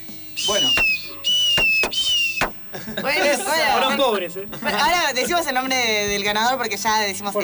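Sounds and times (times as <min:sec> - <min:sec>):
voice imitating fireworks: 0:00.4 - 0:02.7
speech: 0:00.5 - 0:01.4, 0:02.9 - 0:07.4
laughter: 0:02.5 - 0:05.7.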